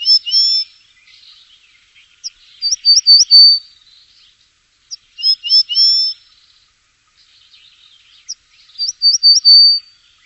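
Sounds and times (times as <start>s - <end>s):
bird whistling: 0.0s - 0.7s, 2.6s - 3.6s, 5.2s - 6.2s, 8.8s - 9.9s.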